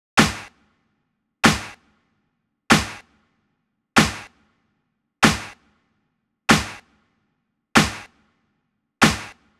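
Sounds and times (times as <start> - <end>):
snare drum: 0.2 - 0.5, 1.4 - 1.8, 2.7 - 3.0, 4.0 - 4.3, 5.2 - 5.6, 6.5 - 6.8, 7.8 - 8.1, 9.0 - 9.5.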